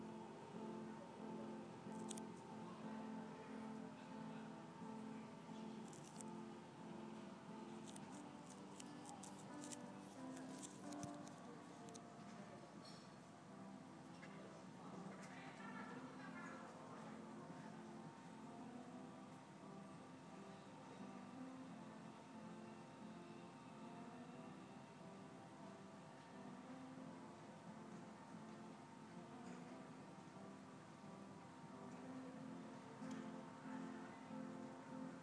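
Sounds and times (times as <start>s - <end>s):
piano: 0.0s - 35.2s.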